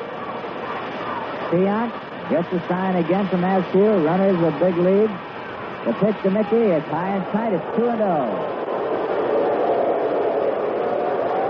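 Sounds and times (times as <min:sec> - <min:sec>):
speech: 0:01.5 - 0:05.2, 0:05.8 - 0:08.6
baseball crowd reacting to a pitch: 0:07.6 - 0:11.4.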